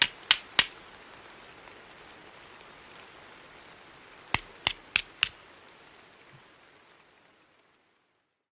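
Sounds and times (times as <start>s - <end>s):
flints of various sizes striking to start a fire in a cave: 0.0s - 0.8s, 4.4s - 5.4s.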